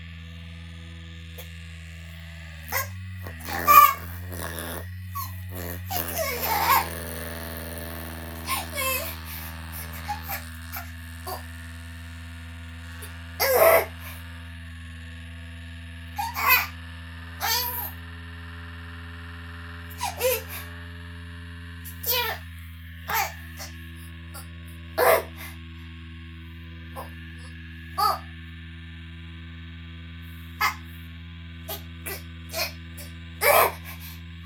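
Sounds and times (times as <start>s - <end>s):
person vocalizing: 2.7s - 11.4s, 13.0s - 14.2s, 16.2s - 16.7s, 17.4s - 18.0s, 19.9s - 20.7s, 23.1s - 23.8s, 24.4s - 25.6s, 28.0s - 28.3s, 30.6s - 30.8s, 31.7s - 34.2s.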